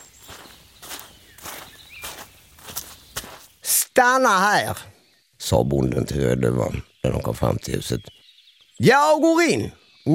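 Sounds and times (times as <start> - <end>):
footsteps crunching through a forest: 0.0 - 3.8
faint bird chirps: 0.0 - 10.1
speech: 4.0 - 8.2, 8.8 - 10.1.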